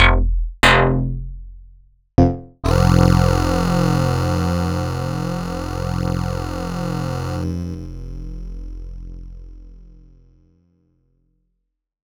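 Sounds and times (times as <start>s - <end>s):
PPG Wave 2 2 synth bass: 0.0s - 1.3s, 2.6s - 9.6s.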